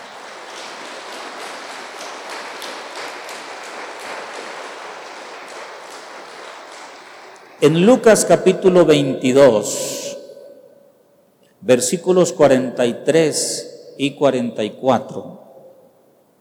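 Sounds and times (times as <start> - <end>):
audience applause: 0.0 - 7.8
speech: 7.6 - 10.0, 11.7 - 15.4.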